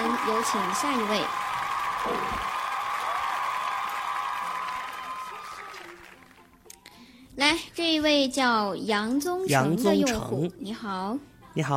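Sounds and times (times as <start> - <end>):
audience clapping: 0.0 - 6.6
speech: 0.3 - 2.6, 7.4 - 11.7.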